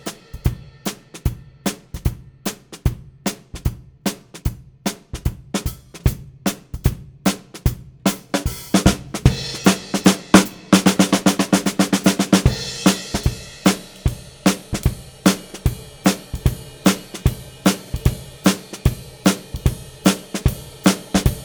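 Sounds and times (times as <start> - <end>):
ragtime drums: 0.0 - 21.4.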